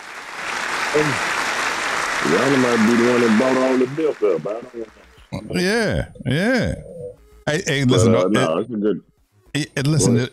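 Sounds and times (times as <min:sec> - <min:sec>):
crowd applause: 0:00.0 - 0:05.0
speech: 0:00.9 - 0:01.3, 0:02.2 - 0:10.3.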